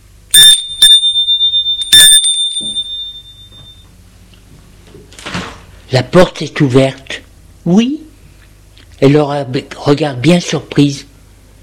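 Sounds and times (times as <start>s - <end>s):
doorbell ringing: 0.3s - 3.9s
speech: 5.9s - 8.0s, 9.0s - 11.1s.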